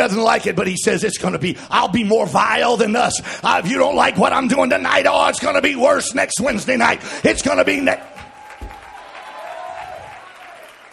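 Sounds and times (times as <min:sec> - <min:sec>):
speech: 0:00.0 - 0:08.2
audience clapping hands: 0:07.6 - 0:10.9.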